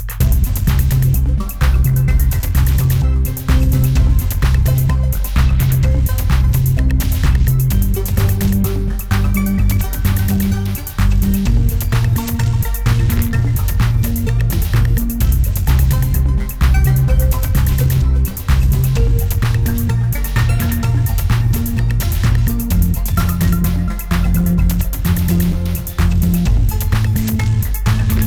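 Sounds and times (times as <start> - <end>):
chill electronic music: 0.2 - 28.2.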